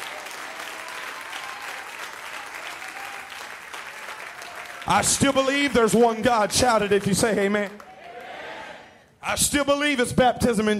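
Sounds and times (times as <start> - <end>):
audience clapping hands: 0.0 - 8.3
speech: 4.9 - 7.8, 9.2 - 10.7.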